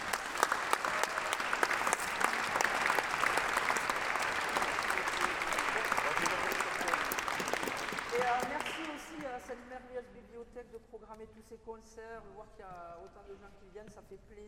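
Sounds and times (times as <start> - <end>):
audience applause: 0.0 - 9.3
speech: 10.7 - 14.4.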